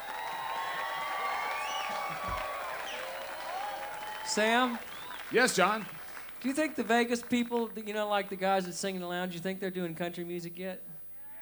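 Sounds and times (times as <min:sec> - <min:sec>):
festival audience applause: 0:00.0 - 0:07.5
speech: 0:04.3 - 0:10.9.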